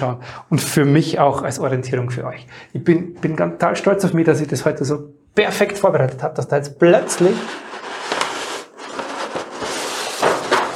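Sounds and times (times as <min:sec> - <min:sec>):
speech: 0:00.0 - 0:07.7
paper being unrolled: 0:07.0 - 0:10.7.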